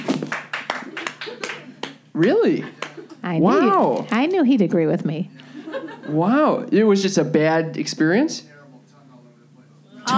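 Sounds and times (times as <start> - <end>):
small group clapping: 0.0 - 3.2
speech: 2.2 - 5.4, 6.1 - 8.5
laughter: 5.4 - 6.4.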